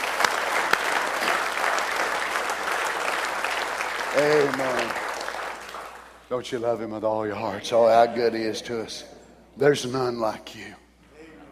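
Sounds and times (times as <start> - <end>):
audience applause: 0.0 - 6.2
speech: 4.2 - 5.0, 6.3 - 10.8.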